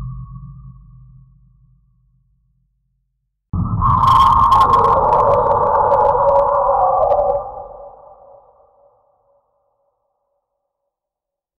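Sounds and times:
scary and eerie ghost sound effects: 3.6s - 9.4s.

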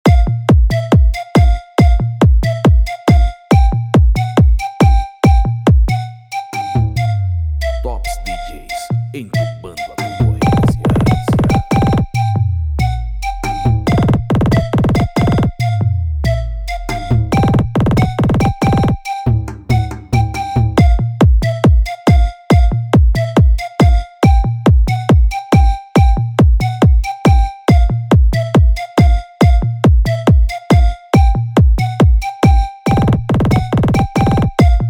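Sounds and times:
flute in pancadão automotivo funk: 0.0s - 34.8s
pancadão automotivo funk beat: 7.8s - 12.2s, 13.3s - 15.6s, 16.8s - 21.8s, 32.9s - 34.8s.

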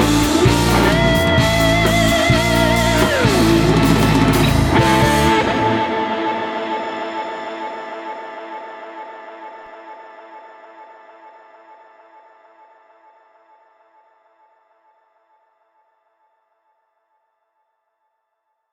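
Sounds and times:
instrumental music: 0.0s - 9.1s.

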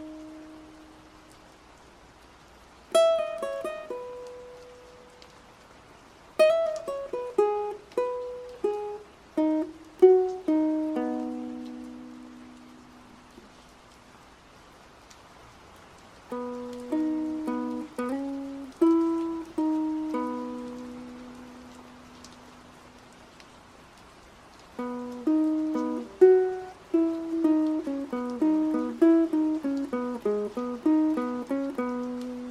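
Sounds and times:
rain at Dongmak Beach: 0.0s - 32.5s
ukulele at Dongmak Beach: 2.9s - 5.2s, 6.4s - 13.5s, 16.3s - 22.7s, 24.8s - 32.5s.

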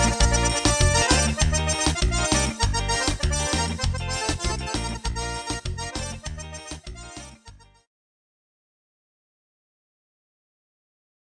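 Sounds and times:
forronejo music: 0.0s - 7.9s.

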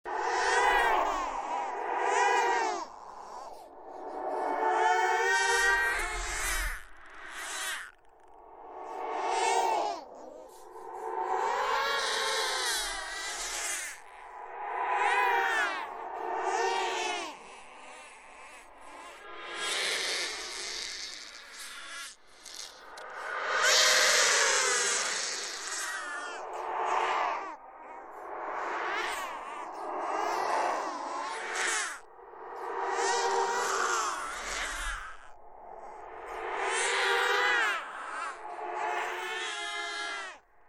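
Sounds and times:
scary demon ghost baby crying: 0.1s - 40.6s.

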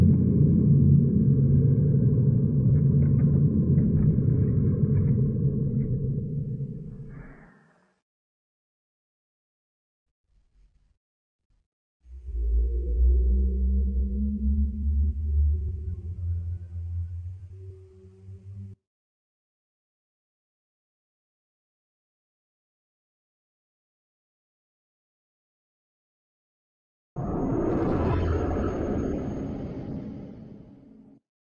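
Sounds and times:
eerie horror whispers: 0.0s - 8.0s, 12.1s - 18.8s, 27.2s - 31.2s.

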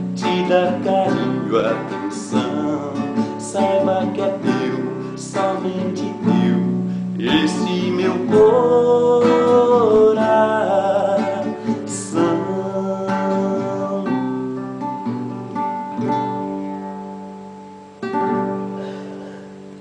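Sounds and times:
voice: 0.0s - 15.2s
acoustic guitar: 0.0s - 19.8s.

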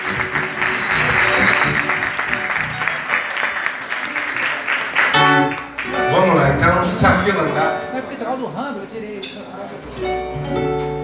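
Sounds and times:
audience applause: 0.0s - 7.6s
speech: 7.0s - 10.7s.

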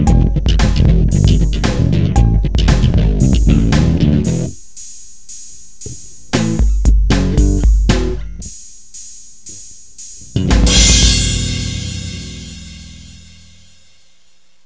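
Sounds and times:
pagode bass lines: 0.0s - 4.6s, 6.3s - 8.5s, 10.2s - 13.9s.

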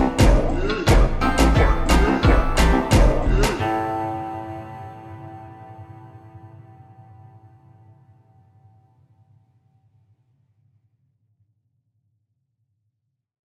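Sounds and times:
slowed Brazilian funk music: 0.0s - 6.9s.

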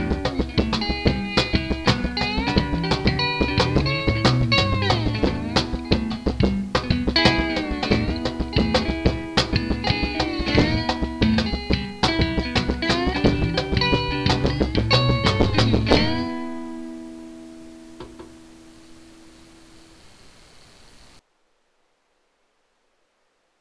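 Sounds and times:
funk music: 0.0s - 18.3s.

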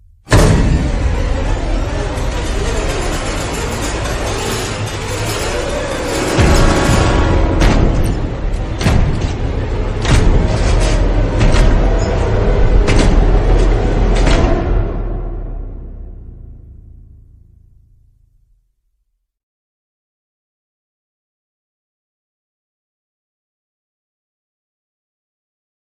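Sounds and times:
music used in a film: 0.0s - 18.2s.

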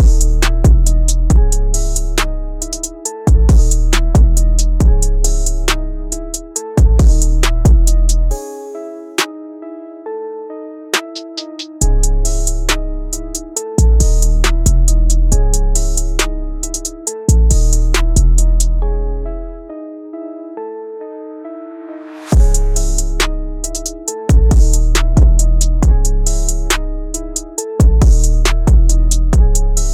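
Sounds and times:
hard dark beat: 0.0s - 8.4s, 11.0s - 18.8s, 22.3s - 29.9s.

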